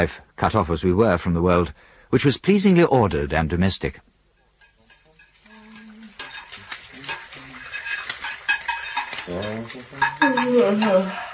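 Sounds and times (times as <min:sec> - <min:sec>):
speech: 0:00.0 - 0:04.1, 0:09.3 - 0:11.3
bacon frying in a pan on the stove: 0:04.3 - 0:11.3.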